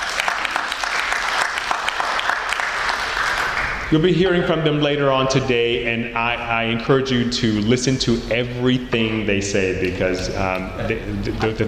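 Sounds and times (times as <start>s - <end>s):
audience applause: 0.0s - 3.9s
speech: 3.9s - 11.6s.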